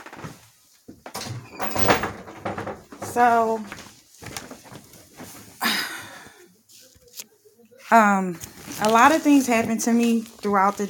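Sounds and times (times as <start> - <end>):
door being shut: 1.1 - 3.2
speech: 3.1 - 3.8, 7.9 - 10.8.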